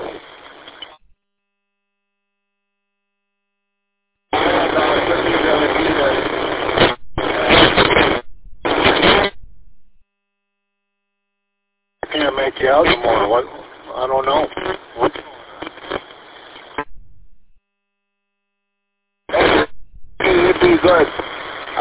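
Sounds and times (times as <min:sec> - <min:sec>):
harsh radio static bursts: 0:00.0 - 0:01.0, 0:04.3 - 0:10.0, 0:12.0 - 0:17.6, 0:19.3 - 0:21.8.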